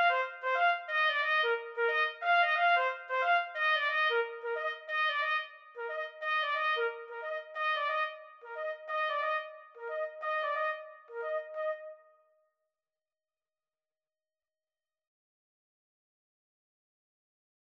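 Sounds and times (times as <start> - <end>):
karaoke trumpet duet: 0.0 - 12.0.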